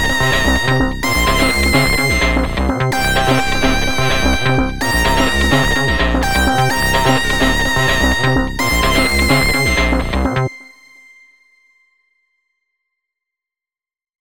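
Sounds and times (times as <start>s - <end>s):
EDM pop music: 0.0s - 10.6s.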